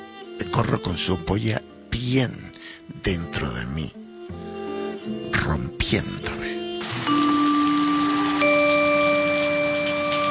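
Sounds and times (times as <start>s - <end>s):
speech: 0.6s - 4.0s, 5.5s - 6.5s
heavy rain: 6.8s - 10.2s.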